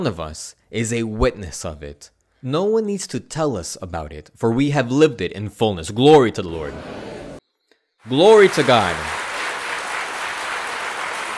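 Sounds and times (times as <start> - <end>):
speech: 0.0 - 7.1, 8.0 - 9.2
audience applauding: 8.1 - 11.3.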